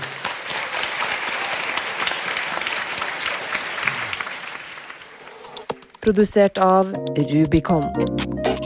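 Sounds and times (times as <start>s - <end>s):
audience applause: 0.0s - 5.7s
speech: 6.0s - 8.5s.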